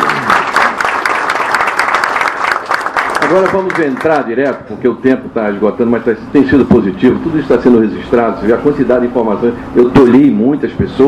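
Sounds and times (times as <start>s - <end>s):
applause: 0.0s - 4.3s
speech: 3.3s - 11.0s.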